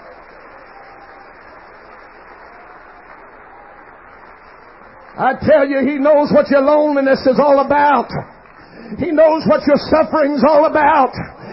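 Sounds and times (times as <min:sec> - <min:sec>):
audience clapping hands: 0:00.0 - 0:11.5
speech: 0:05.2 - 0:11.4.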